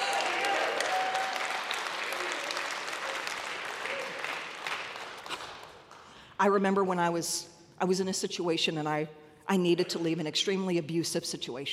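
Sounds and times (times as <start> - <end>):
audience hand clapping: 0.0 - 6.2
speech: 6.4 - 11.7.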